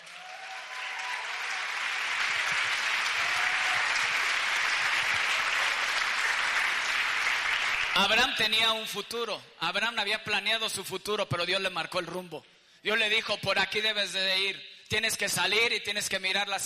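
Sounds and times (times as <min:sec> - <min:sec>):
audience applause: 0:00.0 - 0:08.2
speech: 0:08.0 - 0:16.6.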